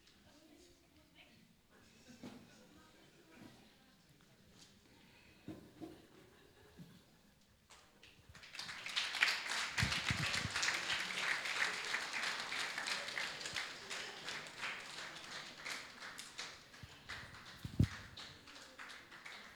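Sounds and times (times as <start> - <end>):
crowd applause: 8.3 - 19.5.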